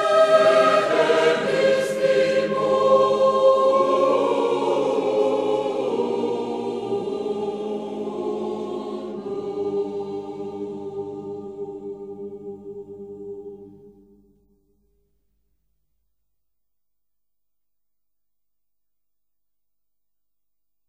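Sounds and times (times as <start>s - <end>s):
Gregorian polyphony for chorus, largo espressivo: 0.0s - 14.5s.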